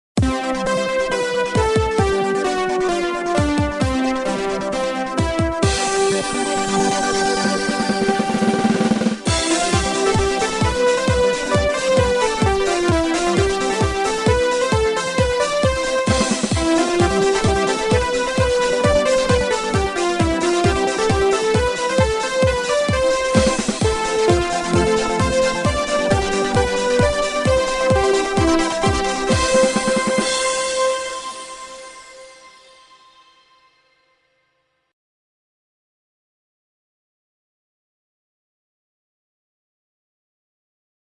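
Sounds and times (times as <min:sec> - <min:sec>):
trance music: 0:00.2 - 0:33.1.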